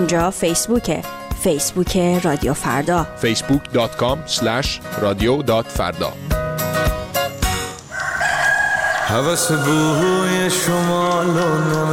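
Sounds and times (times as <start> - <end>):
speech: 0.0 - 6.4, 9.1 - 11.9
rooster crowing: 7.8 - 11.9.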